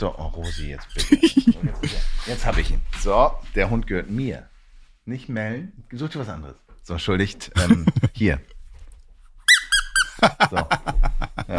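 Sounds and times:
speech: 0.0 - 4.5, 5.1 - 8.5, 10.2 - 11.5
laughter: 1.0 - 2.3, 7.6 - 8.2, 10.2 - 11.5
squeaking dog toy: 9.4 - 10.2.

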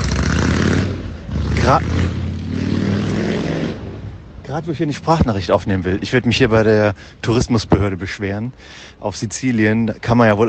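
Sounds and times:
big Harley-Davidson motorcycle riding past on a Sicilian street in the evening: 0.0 - 4.2
speech: 1.7 - 2.2, 4.5 - 10.4.

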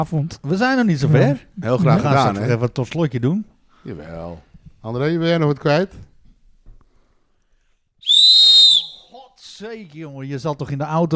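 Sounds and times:
speech: 0.0 - 6.1, 9.6 - 11.1
whistle blown: 8.0 - 9.2.

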